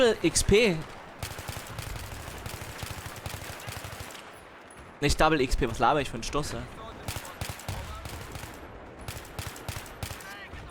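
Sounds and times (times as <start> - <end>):
speech: 0.0 - 1.0, 5.0 - 6.8
gunfire from shooting in a video game: 0.9 - 5.0, 6.8 - 10.7.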